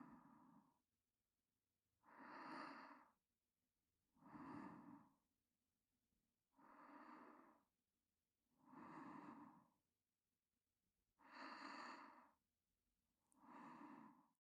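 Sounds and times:
person breathing in sleep on the right: 0.0 - 0.7, 2.0 - 3.2, 4.1 - 5.2, 6.5 - 7.7, 8.6 - 9.8, 11.2 - 12.4, 13.3 - 14.3.

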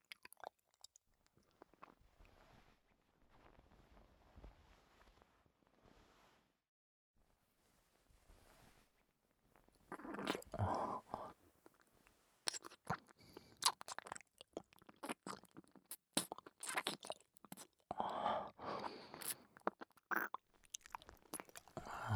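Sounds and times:
ear licking: 9.9 - 10.8, 12.5 - 22.0.

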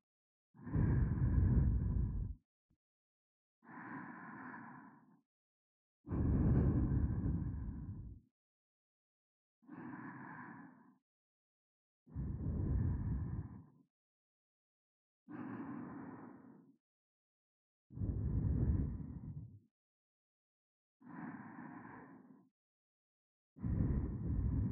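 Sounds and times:
sleeping breathing: 0.6 - 2.3, 3.7 - 5.1, 6.1 - 8.2, 9.7 - 11.0, 12.2 - 13.7, 15.3 - 16.7, 18.0 - 19.4, 21.1 - 22.4, 23.6 - 24.6.

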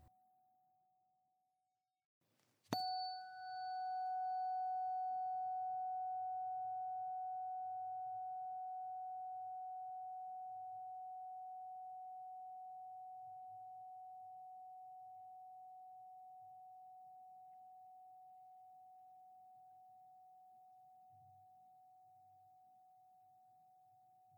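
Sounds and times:
tuning fork struck and ringing: 2.7 - 21.9.

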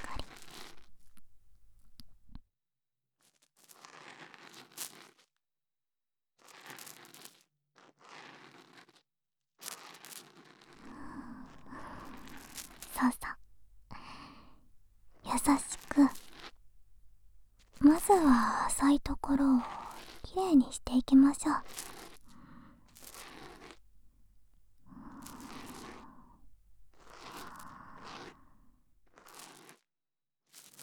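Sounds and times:
ear cleaning in the right ear: 10.8 - 28.7.

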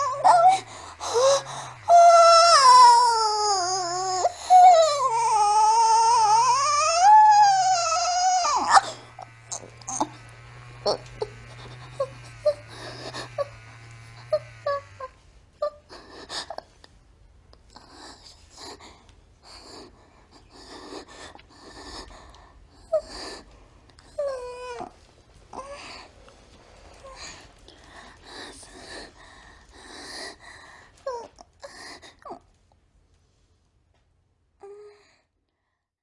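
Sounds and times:
woman moaning: 0.0 - 15.9.

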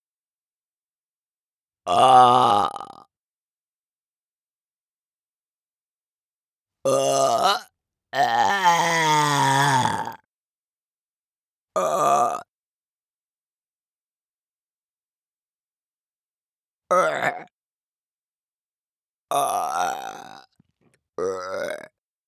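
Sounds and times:
person burping: 1.9 - 3.0, 6.9 - 10.2, 11.8 - 12.5, 16.9 - 17.5, 19.3 - 20.5, 21.2 - 21.9.

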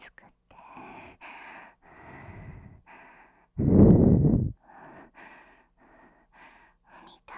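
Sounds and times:
person panting: 1.9 - 6.0.

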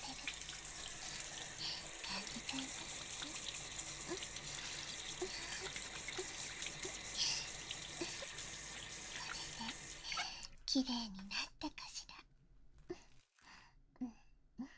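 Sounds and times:
shower water running: 0.0 - 10.4
speech: 10.8 - 11.2.

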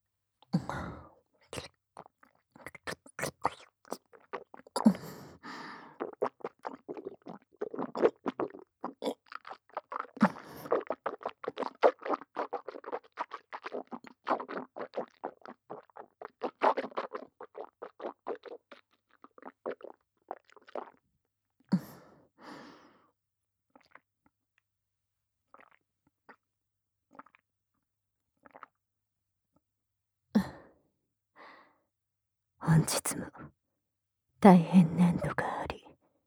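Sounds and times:
wet chewing and mouth sounds: 1.6 - 4.9, 6.0 - 21.0
breaths: 4.9 - 6.0, 21.8 - 23.1, 31.4 - 31.8
speech: 32.8 - 33.4, 34.4 - 35.4.

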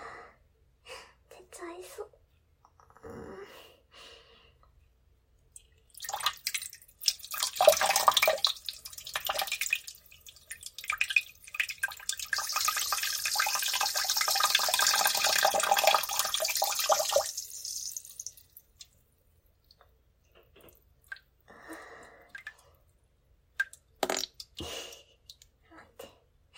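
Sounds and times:
person urinating in a toilet: 5.5 - 19.0, 23.5 - 24.7.

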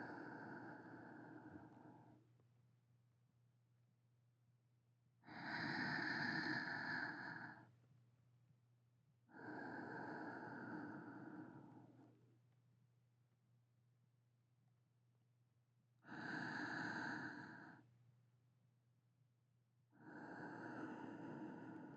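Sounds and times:
sleeping breathing: 0.0 - 2.2, 5.3 - 7.7, 9.3 - 12.1, 16.0 - 17.8, 20.0 - 21.9.

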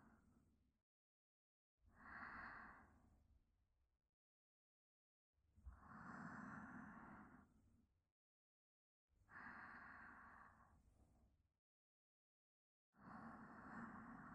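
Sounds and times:
sleep breathing: 2.0 - 2.9, 5.8 - 7.5, 9.3 - 10.6, 13.0 - 14.3.

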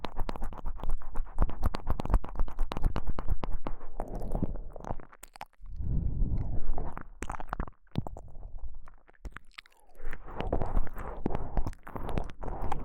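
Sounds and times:
rubbing on right ear of KU100 microphone: 0.0 - 5.0, 5.9 - 7.2, 10.0 - 12.8.

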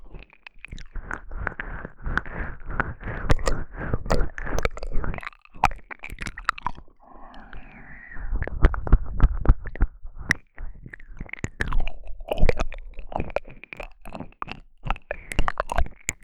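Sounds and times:
ear licking on the right ear for ASMR: 0.0 - 16.2.

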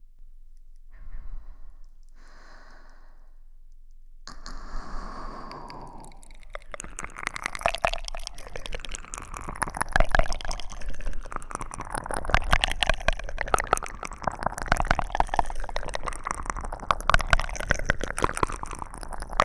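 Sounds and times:
echoing licking sounds: 4.3 - 19.4.

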